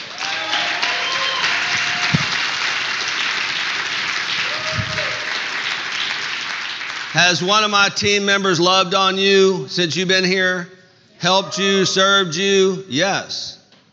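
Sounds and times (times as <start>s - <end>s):
audience shouts and cheers: 0.0s - 2.5s, 4.4s - 5.3s
audience applause: 0.0s - 7.5s
speech: 7.2s - 13.6s.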